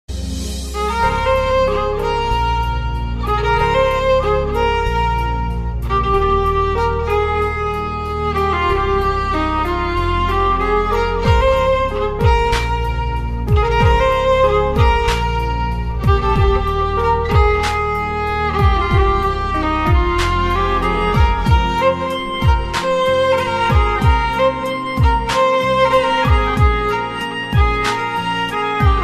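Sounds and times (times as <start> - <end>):
romantic violin: 0.1 - 29.0.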